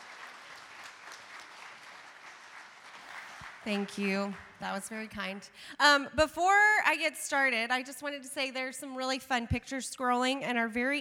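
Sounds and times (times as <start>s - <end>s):
crowd applause: 0.0s - 4.6s
speech: 3.6s - 10.9s.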